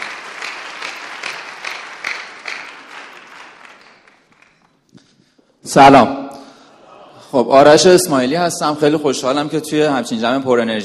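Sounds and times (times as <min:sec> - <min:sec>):
audience applause: 0:00.0 - 0:04.8
speech: 0:05.7 - 0:06.2, 0:07.3 - 0:10.8.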